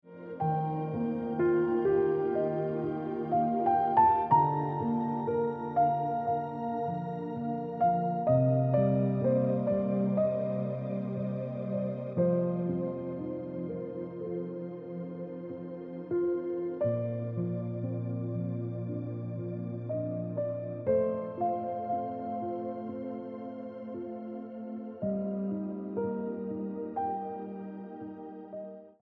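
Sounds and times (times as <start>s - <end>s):
piano ringtone music: 0.4s - 28.7s.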